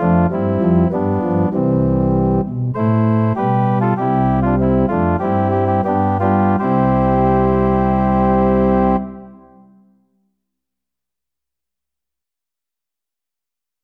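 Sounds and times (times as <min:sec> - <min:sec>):
backing music: 0:00.0 - 0:09.9.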